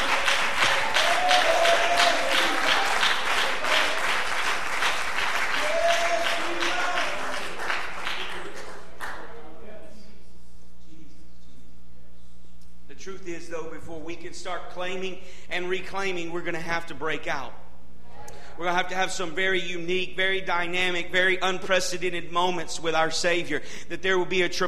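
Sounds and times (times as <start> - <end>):
audience applauding: 0.0 - 9.5
speech: 14.3 - 17.6, 18.6 - 24.6.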